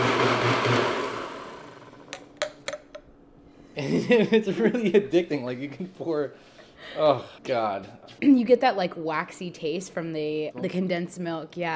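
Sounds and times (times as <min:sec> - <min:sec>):
blender mixing a drink: 0:00.0 - 0:02.1
speech: 0:04.1 - 0:11.7.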